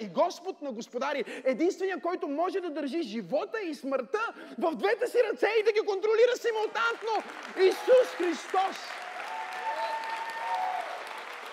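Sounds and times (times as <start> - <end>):
speech: 0.0 - 9.0
audience applauding: 6.5 - 11.5.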